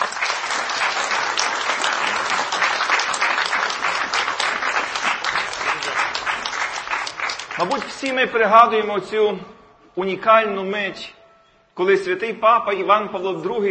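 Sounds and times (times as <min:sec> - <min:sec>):
audience applause: 0:00.0 - 0:08.2
speech: 0:07.6 - 0:11.2, 0:11.8 - 0:13.6.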